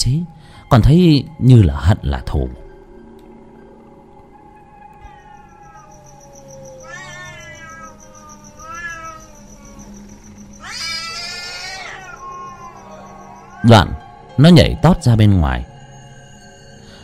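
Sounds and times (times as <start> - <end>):
speech: 0.0 - 2.6, 13.6 - 15.7
cat on a window growling and caterwauling after being hit by a rattan pillow: 5.0 - 10.0, 10.6 - 13.1.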